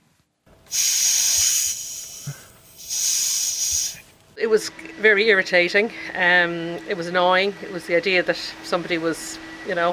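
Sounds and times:
air hissing out of a car tyre: 0.7s - 4.1s
speech: 4.4s - 9.9s.

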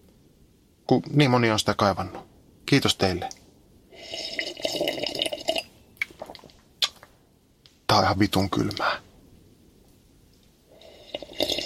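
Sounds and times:
speech: 0.9s - 3.4s, 7.9s - 9.0s
person slurping coffee: 4.0s - 5.6s, 10.7s - 11.6s
lip smack: 6.0s - 7.1s.

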